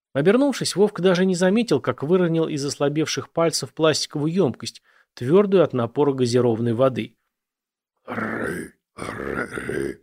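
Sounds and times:
speech: 0:00.2 - 0:07.2, 0:08.0 - 0:10.0
rough gurgling growls: 0:08.1 - 0:10.0.

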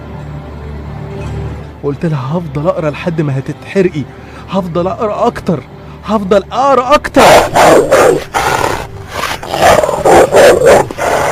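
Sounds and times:
speech: 0:01.8 - 0:08.5
dog growling and barking: 0:07.2 - 0:11.3.

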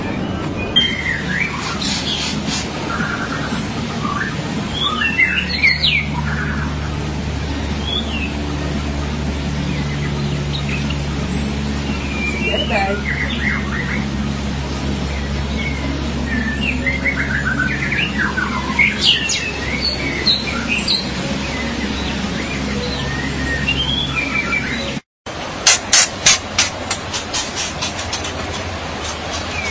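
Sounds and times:
magpie-robin or shama song: 0:00.0 - 0:25.0, 0:26.2 - 0:29.7
loud sharp clicks: 0:25.6 - 0:28.1.

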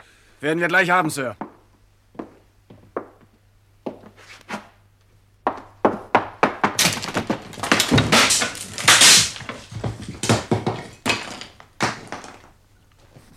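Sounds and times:
speech: 0:00.4 - 0:01.4
splintering blows and rattling: 0:06.4 - 0:12.5
locked wooden door being forced open: 0:06.5 - 0:12.5.

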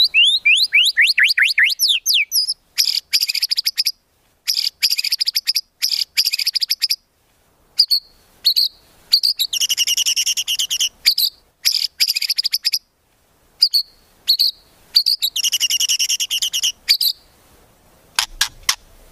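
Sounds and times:
white-rumped shama swooping whistles, chips and clicks: 0:00.0 - 0:02.6, 0:07.8 - 0:12.8, 0:13.6 - 0:17.2.

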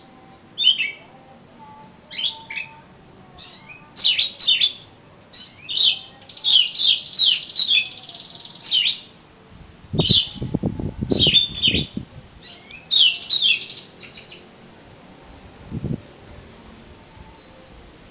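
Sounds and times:
Oriental magpie-robin song: 0:00.6 - 0:01.0, 0:02.1 - 0:02.8, 0:03.4 - 0:09.1, 0:10.0 - 0:14.4.

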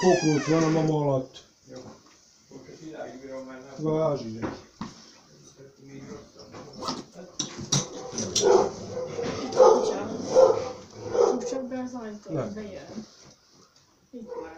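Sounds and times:
speech: 0:00.0 - 0:04.6, 0:08.4 - 0:08.8, 0:11.9 - 0:13.1, 0:14.1 - 0:14.5
dog barking: 0:07.9 - 0:11.7, 0:14.2 - 0:14.5.

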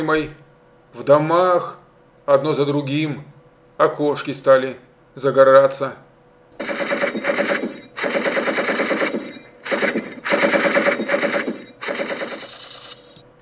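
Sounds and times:
speech: 0:00.0 - 0:06.0
machine gun firing: 0:06.6 - 0:13.2.

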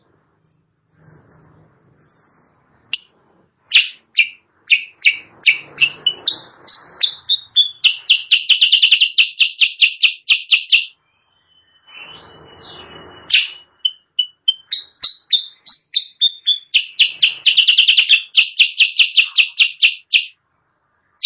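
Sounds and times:
sooty-headed bulbul chirping, training song for caged birds: 0:03.7 - 0:11.0, 0:12.0 - 0:20.4.

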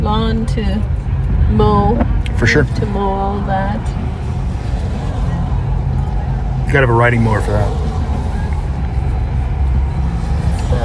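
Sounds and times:
road traffic on Highway 17, the Trans-Canadian Highway: 0:00.0 - 0:10.8
speech: 0:00.1 - 0:04.0, 0:06.7 - 0:07.9.

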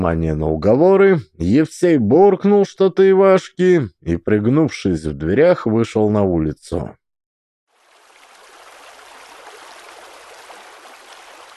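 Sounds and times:
speech: 0:00.0 - 0:07.0
rushing water splashing over a river riffle: 0:07.7 - 0:11.5.

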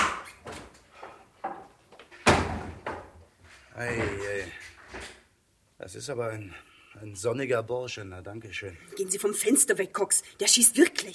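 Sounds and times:
house door shutting with heavy thud: 0:02.2 - 0:03.0
speech: 0:03.8 - 0:04.6, 0:05.8 - 0:11.1.

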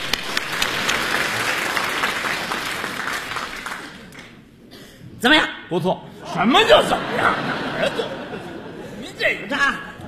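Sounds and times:
audience applause at a live comic performance: 0:00.0 - 0:04.4
speech: 0:05.2 - 0:08.2, 0:09.2 - 0:09.9
laughter: 0:06.2 - 0:10.0.

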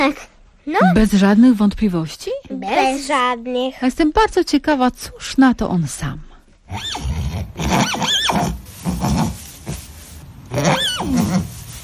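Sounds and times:
speech: 0:00.1 - 0:09.4, 0:10.5 - 0:11.5
young horse foal whinnying: 0:06.7 - 0:08.6, 0:10.5 - 0:11.6.

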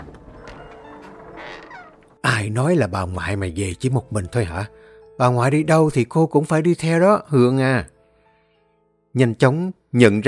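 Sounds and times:
door being opened: 0:00.0 - 0:02.2
speech: 0:02.4 - 0:07.9, 0:09.2 - 0:10.2.

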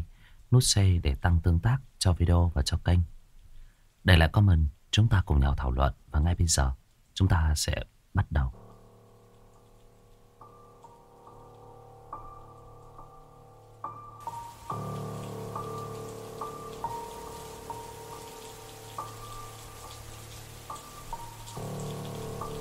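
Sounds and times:
speech: 0:00.5 - 0:03.2, 0:04.0 - 0:08.6
July rain shower pouring down: 0:08.6 - 0:22.6.

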